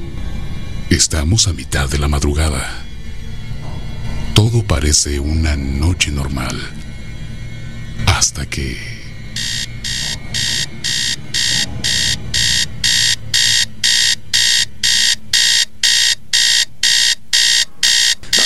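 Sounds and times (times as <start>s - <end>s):
speech: 1.0s - 2.9s, 4.4s - 6.9s, 8.2s - 9.0s
alarm clock ringing: 9.4s - 18.4s.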